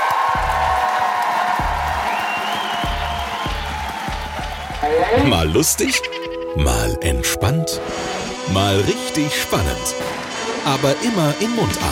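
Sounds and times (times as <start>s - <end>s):
audience applauding and cheering: 0.0s - 6.0s
regular thumping beat: 1.5s - 6.0s
speech: 4.9s - 11.8s.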